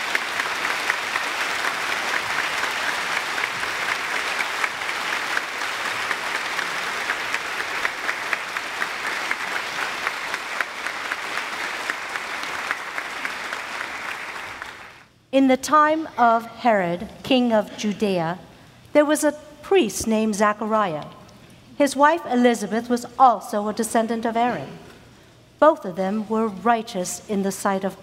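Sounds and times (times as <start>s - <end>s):
audience applause: 0.0s - 15.1s
speech: 15.4s - 21.2s, 21.8s - 24.8s, 25.6s - 28.0s.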